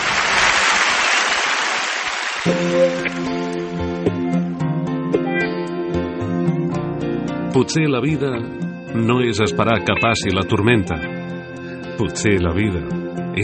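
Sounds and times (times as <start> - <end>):
audience applause: 0.0 - 3.6
speech: 2.4 - 4.2, 7.6 - 11.2, 12.0 - 13.4
music with sustained harmonic tones: 2.4 - 13.4.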